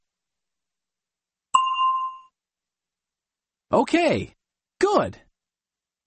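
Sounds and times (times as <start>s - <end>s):
bell ding signalling time to answer: 1.6s - 2.3s
speech: 3.7s - 5.2s.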